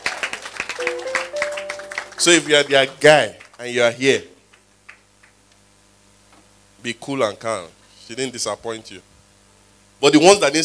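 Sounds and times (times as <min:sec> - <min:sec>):
audience clapping: 0:00.0 - 0:03.9, 0:04.5 - 0:05.4
speech: 0:02.2 - 0:04.3, 0:06.8 - 0:09.1, 0:10.0 - 0:10.6.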